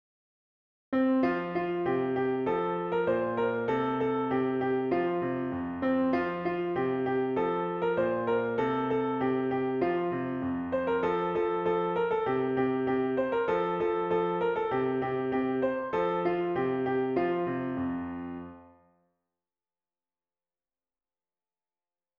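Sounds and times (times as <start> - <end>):
piano: 1.0 - 18.9.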